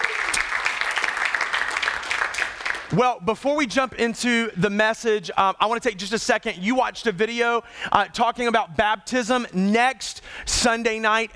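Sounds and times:
church congregation applauding to welcome online viewers: 0:00.0 - 0:03.0
speech: 0:02.9 - 0:11.3.

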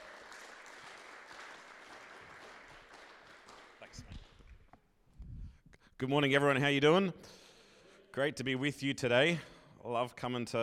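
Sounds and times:
church congregation clapping to welcome a guest youth pastor: 0:00.0 - 0:04.7
speech: 0:06.0 - 0:07.4, 0:08.2 - 0:10.6.

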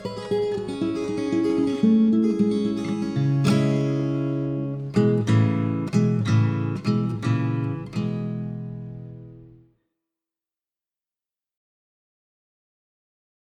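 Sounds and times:
acoustic music: 0:00.0 - 0:09.6.

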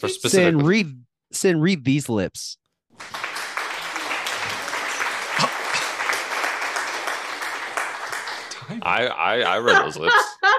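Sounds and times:
speech: 0:00.0 - 0:03.2, 0:08.7 - 0:10.5
applause sound effect: 0:02.9 - 0:08.7
laughter: 0:03.9 - 0:10.5.

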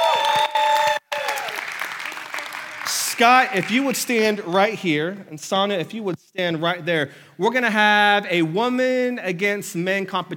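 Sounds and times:
church audience clapping to welcome young adult leaders: 0:00.0 - 0:04.5
speech: 0:03.2 - 0:10.3.

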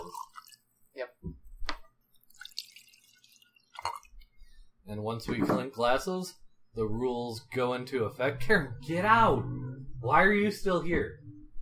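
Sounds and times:
scotch being poured: 0:00.0 - 0:00.8, 0:02.1 - 0:04.3
speech: 0:04.9 - 0:11.2.

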